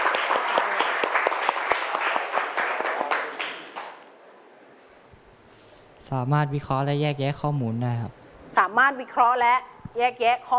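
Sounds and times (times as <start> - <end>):
classroom applause for a student: 0.0 - 4.1
speech: 6.1 - 10.5.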